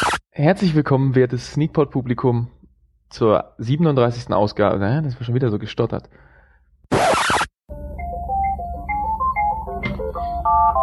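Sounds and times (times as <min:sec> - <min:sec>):
speech: 0:00.0 - 0:06.3
telephone ringing: 0:08.2 - 0:10.8.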